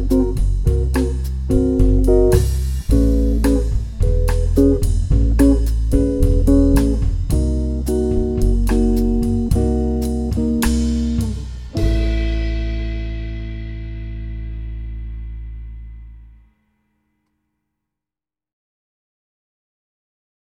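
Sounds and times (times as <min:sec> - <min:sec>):
musical vamp: 0:00.0 - 0:15.0.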